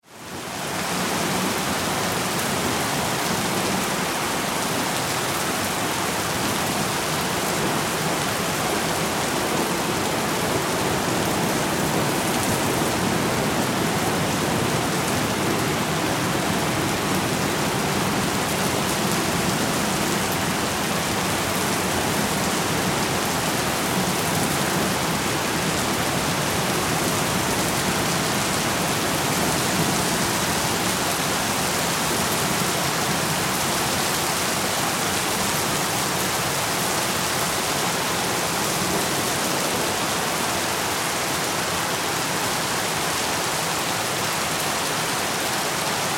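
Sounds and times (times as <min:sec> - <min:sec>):
heavy rain pouring: 0:00.0 - 0:46.1.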